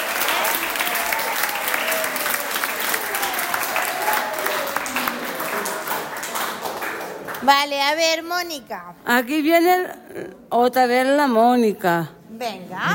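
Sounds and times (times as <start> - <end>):
faint cheers: 0.0 - 5.9
audience applauding: 0.0 - 7.5
speech: 7.4 - 12.9.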